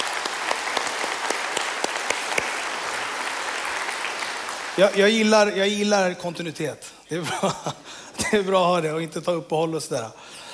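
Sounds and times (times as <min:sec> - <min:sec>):
audience clapping: 0:00.0 - 0:05.9
speech: 0:04.8 - 0:10.4.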